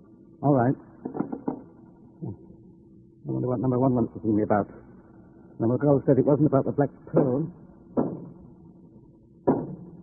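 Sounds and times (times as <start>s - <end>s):
speech: 0.4s - 1.2s, 3.3s - 4.9s, 5.6s - 7.6s
dull knocks on a door: 8.0s - 8.4s, 9.5s - 9.9s.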